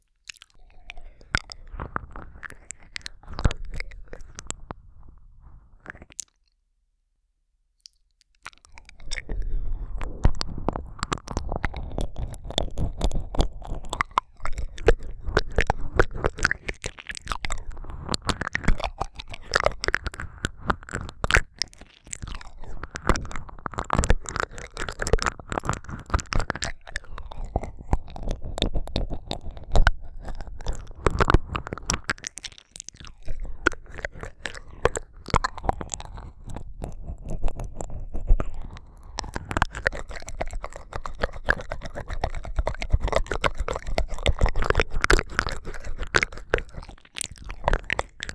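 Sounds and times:
slightly intense ASMR ear licking: 0.3s - 6.2s, 8.4s - 48.3s.

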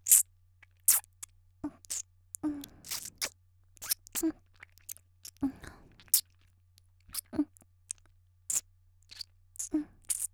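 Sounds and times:
restrained fellatio sounds: 0.9s - 6.3s, 8.5s - 10.3s.

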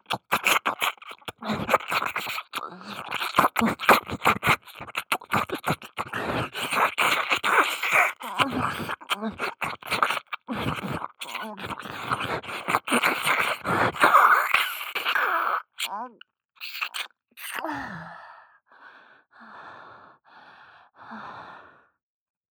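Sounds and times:
intense ear licking in the right ear: 0.0s - 15.9s, 16.6s - 17.6s.

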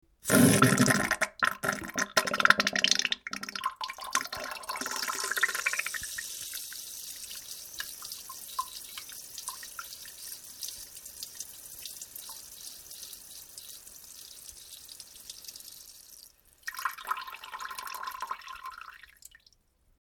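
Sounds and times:
watery diarrhea farting: 0.2s - 6.2s.

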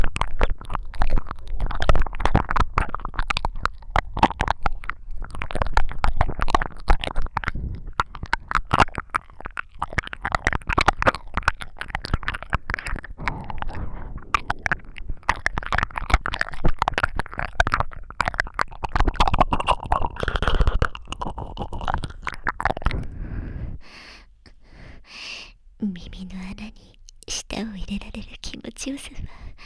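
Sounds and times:
ear licking: 0.0s - 23.5s.

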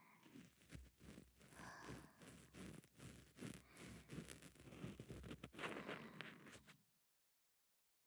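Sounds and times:
ear cleaning on the left side: 0.3s - 6.7s.

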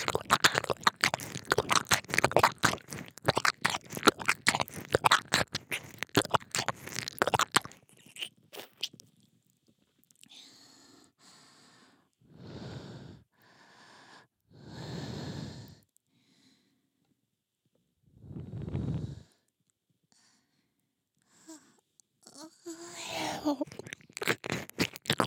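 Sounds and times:
ear licking on the left: 0.0s - 9.1s, 22.3s - 25.2s.

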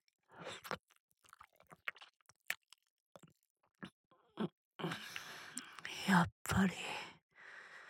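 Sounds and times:
ASMR ear-nibbling wet mouth and chewing sounds: 0.4s - 5.9s
speech: 6.1s - 7.0s.

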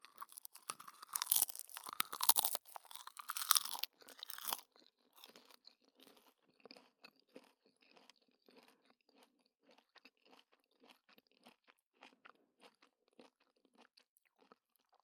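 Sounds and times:
crunching crisp nori on a snack: 0.0s - 4.6s.

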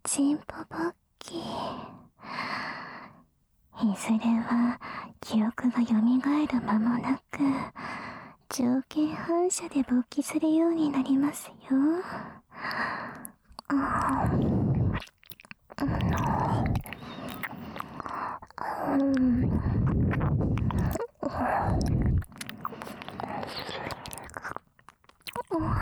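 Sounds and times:
speech: 0.1s - 1.9s, 3.8s - 7.9s, 8.5s - 14.6s, 15.8s - 17.2s, 18.8s - 20.5s
ear licking: 13.1s - 25.7s.

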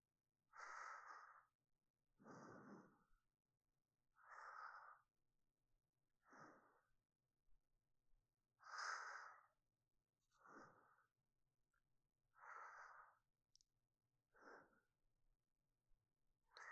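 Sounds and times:
sleeping breath: 0.5s - 1.6s, 2.2s - 3.2s, 4.2s - 5.1s, 6.2s - 7.0s, 8.6s - 9.6s, 10.3s - 11.2s, 12.3s - 13.3s, 14.3s - 14.9s, 16.5s - 16.7s.

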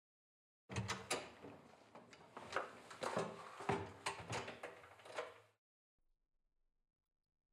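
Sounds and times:
person speaking: 0.7s - 5.4s
door being opened with rattles scrapes and knocks: 0.7s - 5.6s.

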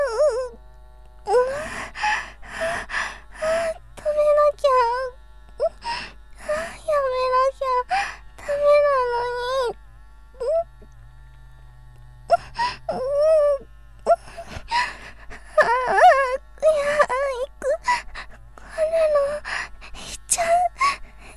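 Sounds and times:
live performance voice only with electric massager: 1.3s - 5.8s, 6.4s - 9.8s, 12.3s - 21.3s.

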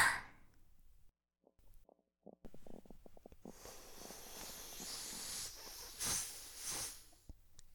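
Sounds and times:
quiet hissing fart: 2.5s - 7.3s.

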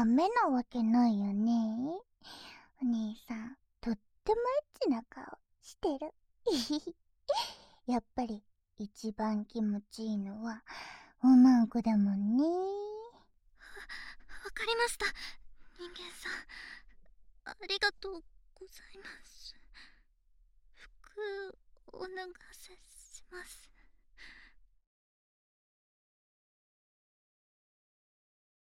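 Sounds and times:
voice only: 0.0s - 2.0s, 2.8s - 10.6s, 11.2s - 13.2s, 13.8s - 16.6s, 17.5s - 19.6s, 21.0s - 23.6s.

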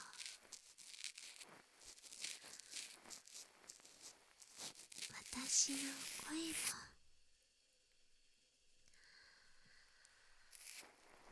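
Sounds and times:
ear pick scraping inside an ear: 0.0s - 6.7s, 10.5s - 11.3s
speech: 5.6s - 6.9s.

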